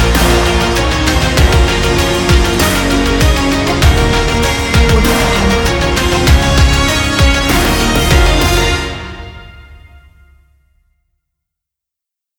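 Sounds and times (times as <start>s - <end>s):
dramatic action sport big beat drum kit: 0.0s - 9.0s.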